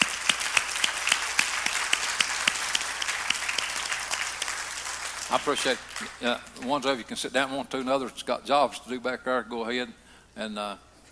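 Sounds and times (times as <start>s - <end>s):
audience applause: 0.0s - 6.2s
speech: 5.3s - 10.9s.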